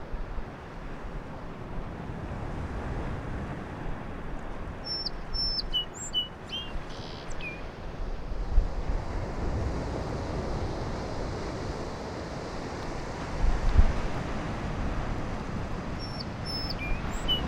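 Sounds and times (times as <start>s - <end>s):
continuous surf roar: 0.0s - 17.4s
song sparrow song: 4.8s - 7.8s, 16.0s - 17.4s.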